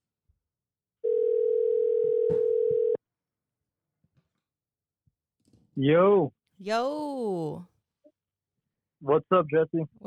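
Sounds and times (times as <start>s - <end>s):
phone ringback tone while a call is placed: 1.1s - 3.0s
speech: 5.8s - 7.7s, 9.0s - 10.0s.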